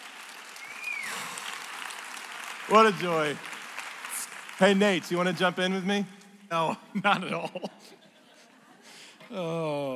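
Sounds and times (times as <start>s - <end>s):
audience applause: 0.0s - 6.0s
speech: 2.7s - 3.5s, 4.6s - 8.0s, 9.3s - 9.9s
laughter: 7.0s - 9.9s.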